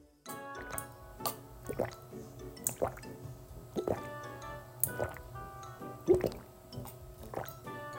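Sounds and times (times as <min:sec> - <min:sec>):
water dripping: 0:00.3 - 0:07.9.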